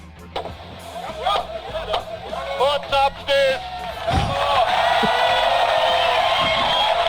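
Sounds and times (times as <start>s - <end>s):
speech: 2.6s - 3.7s
yodel machine sound effect of a cheering, shouting crowd: 3.8s - 7.0s.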